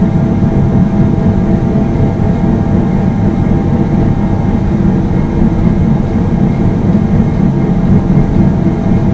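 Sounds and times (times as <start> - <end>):
ambience: 0.0 - 9.1.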